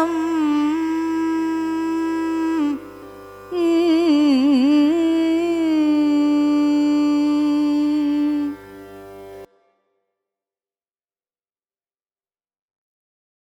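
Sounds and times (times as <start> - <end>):
Carnatic music: 0.0 - 10.0.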